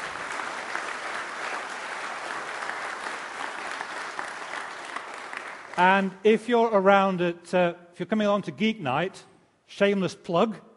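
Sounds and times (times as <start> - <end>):
audience clapping: 0.0 - 6.4
speech: 5.8 - 10.7.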